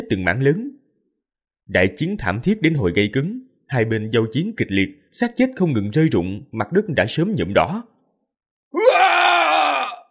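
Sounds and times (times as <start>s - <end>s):
speech: 0.1s - 0.8s, 1.7s - 7.9s
human cry of agony: 8.7s - 10.0s.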